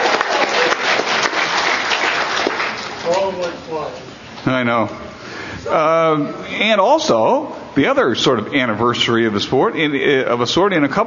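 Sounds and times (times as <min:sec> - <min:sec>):
audience applause: 0:00.0 - 0:03.4
speech: 0:03.3 - 0:11.0.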